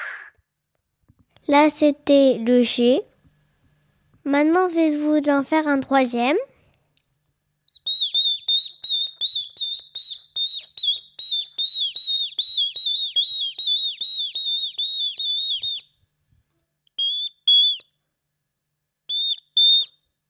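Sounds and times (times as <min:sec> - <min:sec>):
speech: 0:01.5 - 0:03.1, 0:04.3 - 0:06.5
person whistling an imitation of a tit's song: 0:07.7 - 0:15.9, 0:16.9 - 0:17.9, 0:19.1 - 0:20.1.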